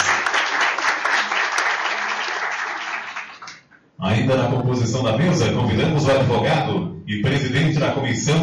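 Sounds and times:
audience applause: 0.0s - 3.7s
speech: 4.0s - 8.4s.

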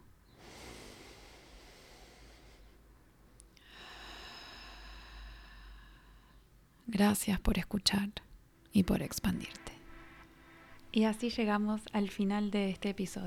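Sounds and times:
deep breath: 0.2s - 6.6s
speech: 6.9s - 9.8s, 10.9s - 13.2s.

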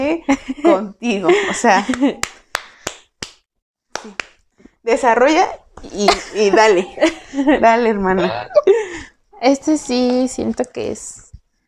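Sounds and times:
speech: 0.2s - 2.4s, 4.8s - 11.2s
hand clapping: 1.8s - 4.4s
laughter: 6.0s - 8.9s.

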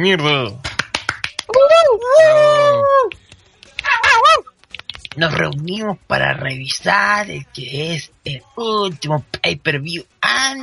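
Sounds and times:
speech: 0.0s - 0.6s, 1.6s - 3.2s, 5.2s - 10.6s
sharp hand claps: 0.5s - 1.8s, 2.7s - 5.2s
loud drawn-out vocal whoop: 1.5s - 3.2s, 3.8s - 4.5s.

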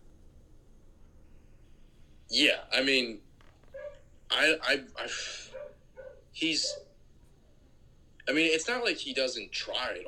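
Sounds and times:
speech: 2.3s - 3.2s, 4.3s - 5.4s, 6.4s - 6.8s, 8.3s - 10.0s
dogs barking: 3.7s - 4.1s, 5.2s - 7.0s.

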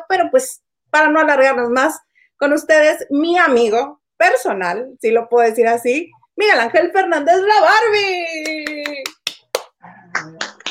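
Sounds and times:
speech: 0.1s - 8.7s
scattered hand claps: 8.4s - 10.6s.

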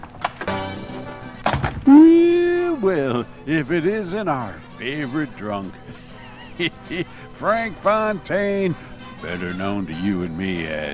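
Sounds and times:
loud drawn-out door creak sliding upward in pitch: 0.0s - 0.8s, 1.4s - 2.1s
harmonic sound: 0.0s - 10.9s
door clunks and knocks as it is opened for a visitor: 1.4s - 1.9s
speech: 1.9s - 6.0s, 6.6s - 10.9s
laughter: 1.9s - 10.3s.

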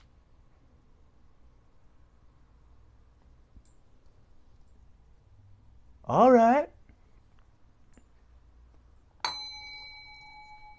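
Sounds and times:
speech: 6.1s - 6.7s
meditation chime ringing: 9.2s - 10.7s.

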